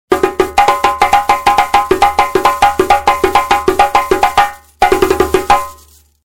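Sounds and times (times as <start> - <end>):
djembe drumming: 0.1 - 6.0.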